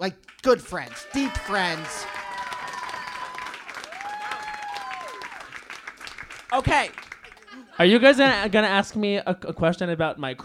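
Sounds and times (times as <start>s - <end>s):
speech: 0.0s - 2.2s, 6.5s - 7.1s, 7.8s - 10.4s
audience applause: 0.3s - 7.8s
whistles and cheers: 0.9s - 5.6s
laughter: 7.2s - 8.6s.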